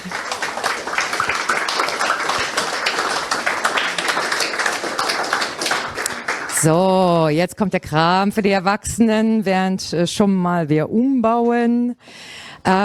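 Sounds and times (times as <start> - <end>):
audience applause: 0.0 - 6.7
speech: 6.6 - 12.8.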